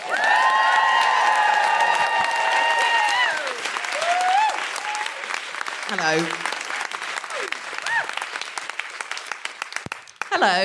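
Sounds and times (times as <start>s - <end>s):
audience voices whooping and woohooing: 0.0s - 5.2s
audience applauding a comedian at a stand-up show: 0.0s - 10.6s
speech: 5.9s - 6.5s, 10.4s - 10.6s.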